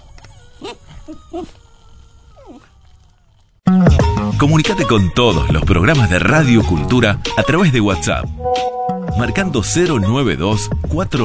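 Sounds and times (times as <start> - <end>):
dog whimpering: 0.0 - 3.6
speech: 0.6 - 1.7, 4.4 - 11.2.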